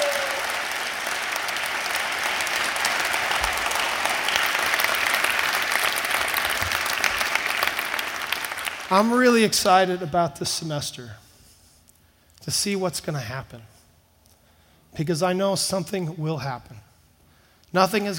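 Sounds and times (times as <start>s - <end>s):
audience applause welcoming new staff: 0.0s - 9.1s
speech: 8.9s - 11.2s, 12.4s - 13.7s, 15.0s - 16.9s, 17.7s - 18.1s.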